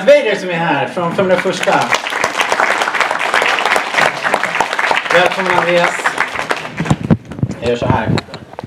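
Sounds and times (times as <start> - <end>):
speech: 0.0 - 2.1, 5.2 - 6.1, 7.6 - 8.3
crowd clapping: 1.3 - 7.7.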